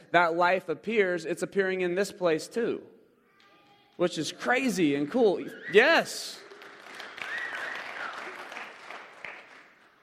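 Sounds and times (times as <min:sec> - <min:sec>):
speech: 0:00.1 - 0:03.0, 0:04.0 - 0:06.4
crowd applauding: 0:05.6 - 0:10.0.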